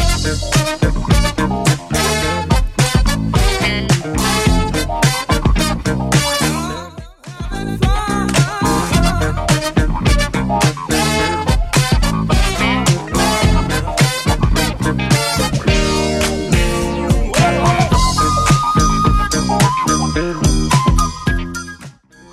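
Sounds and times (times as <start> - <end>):
70s style drum beat at 107 bpm: 0.0 - 6.4, 7.0 - 21.6.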